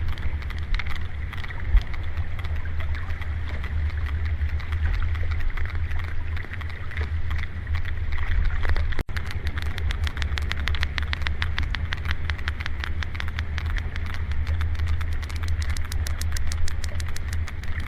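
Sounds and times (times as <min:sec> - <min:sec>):
sperm whale: 0:00.0 - 0:17.8.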